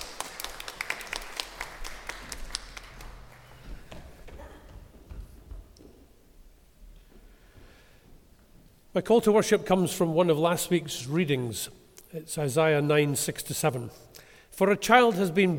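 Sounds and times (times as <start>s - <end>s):
round of applause: 0.0s - 4.1s
speech: 9.0s - 15.5s.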